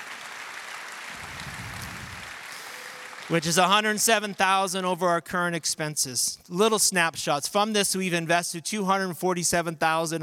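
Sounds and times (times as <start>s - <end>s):
audience applause: 0.0s - 4.6s
speech: 3.3s - 10.2s.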